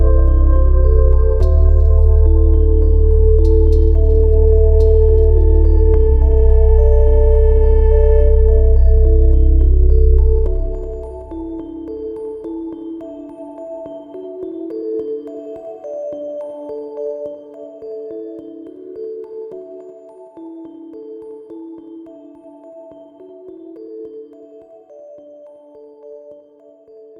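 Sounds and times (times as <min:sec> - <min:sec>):
autumn ambient music jam: 0:00.0 - 0:14.8.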